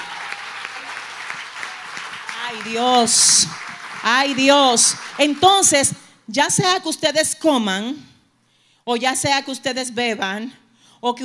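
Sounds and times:
audience applause: 0.0s - 5.9s
speech: 2.5s - 8.1s, 8.8s - 11.2s.

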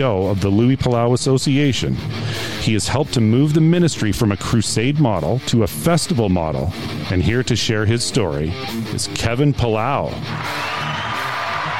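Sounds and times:
speech: 0.0s - 10.7s
fans cheering: 10.3s - 11.7s
high whoops: 10.3s - 11.7s.

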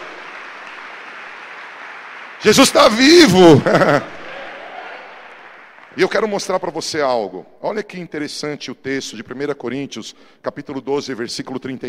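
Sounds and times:
audience applause: 0.0s - 6.3s
speech: 2.4s - 4.1s, 6.0s - 11.8s
laughter: 3.3s - 5.0s.

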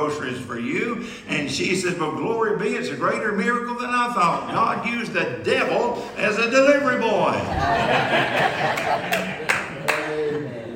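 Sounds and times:
speech: 0.1s - 9.4s
laughter: 7.3s - 10.7s
audience clapping: 8.3s - 10.4s.

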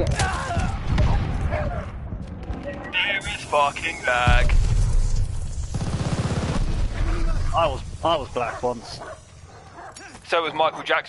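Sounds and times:
continuous rumbling shooter video game noise: 0.0s - 8.6s
gunfire in a shooter video game: 3.4s - 8.3s
speech: 3.5s - 4.6s, 7.6s - 9.1s, 10.3s - 11.0s.

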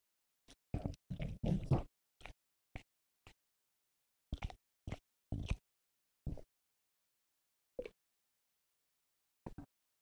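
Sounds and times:
pet chewing and crunching its food: 0.5s - 3.4s, 4.3s - 5.6s.

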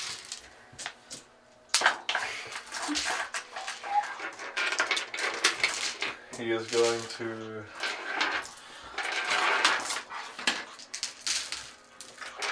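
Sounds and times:
heavy dice being scooped up: 1.8s - 12.4s
speech: 6.4s - 7.8s.

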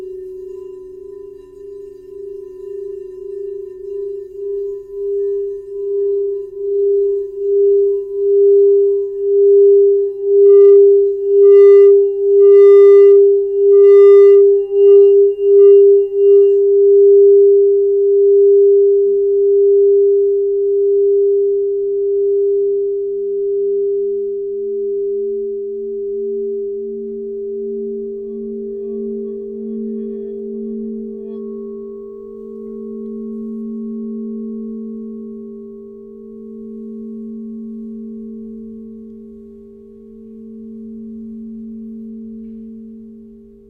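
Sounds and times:
crystal singing bowl ringing: 0.0s - 43.6s
second lower wavering tone: 0.0s - 43.6s.

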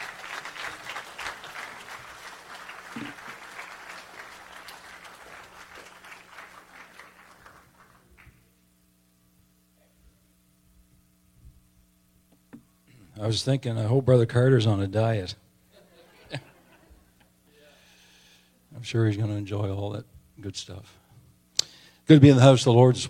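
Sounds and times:
audience applause: 0.0s - 8.4s
low electrical hum: 0.0s - 23.0s
speech: 13.2s - 15.4s, 18.9s - 21.0s, 22.1s - 23.0s
laughter: 15.7s - 17.2s.

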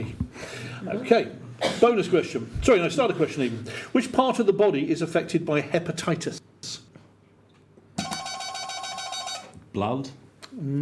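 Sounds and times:
speech: 0.8s - 6.4s, 9.8s - 10.8s
quiz buzzer: 8.0s - 9.6s.

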